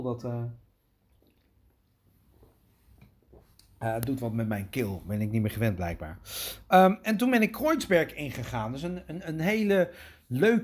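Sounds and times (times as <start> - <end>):
speech: 0.0 - 0.6, 3.8 - 10.6
person sipping a drink: 1.1 - 2.0.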